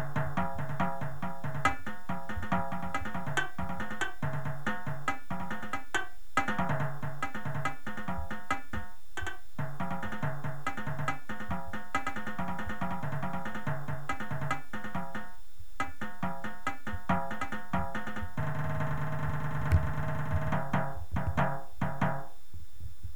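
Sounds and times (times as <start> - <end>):
drumline tenor drums: 0.0 - 22.3.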